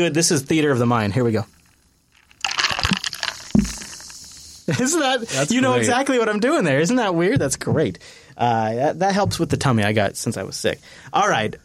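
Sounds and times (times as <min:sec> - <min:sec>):
speech: 0:00.0 - 0:01.6, 0:04.7 - 0:11.6
7-Up soda fizzing: 0:02.2 - 0:04.7.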